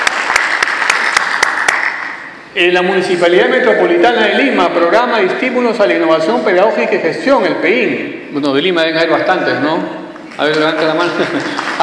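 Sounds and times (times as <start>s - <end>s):
audience applause at an education conference in Peru: 0.0s - 2.2s, 10.6s - 11.8s
sharp rhythmic claps: 0.0s - 2.4s, 10.2s - 11.8s
speech: 2.6s - 11.8s.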